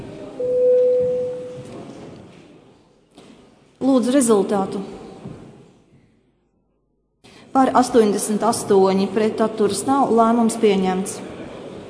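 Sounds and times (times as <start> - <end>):
parliament voting bell: 0.4 - 1.6
speech: 3.8 - 5.0, 7.6 - 11.3.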